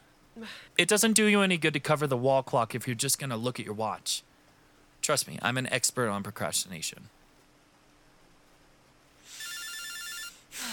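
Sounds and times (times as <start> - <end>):
speech: 0.4 - 4.3, 5.0 - 7.2
telephone ringing: 9.4 - 10.4.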